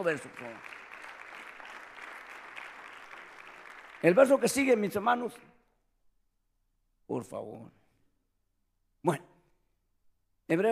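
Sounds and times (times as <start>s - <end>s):
speech: 0.0s - 0.8s, 4.0s - 5.5s, 7.1s - 7.8s, 9.0s - 9.3s, 10.5s - 10.6s
audience applause: 0.0s - 4.8s.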